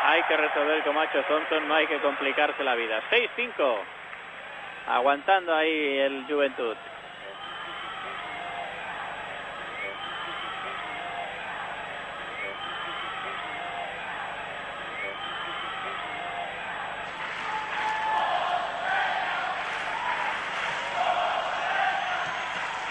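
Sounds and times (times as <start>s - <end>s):
basketball crowd cheering: 0.0s - 3.1s, 6.8s - 22.8s
scattered applause: 0.0s - 4.9s, 6.8s - 22.8s
speech: 0.1s - 4.0s, 4.9s - 6.9s
basketball crowd chanting: 7.4s - 22.8s.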